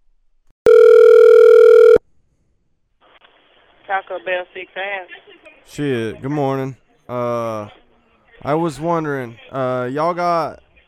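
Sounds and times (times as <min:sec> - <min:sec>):
telephone dial tone: 0:00.7 - 0:02.0
speech: 0:03.9 - 0:07.8, 0:08.4 - 0:10.6.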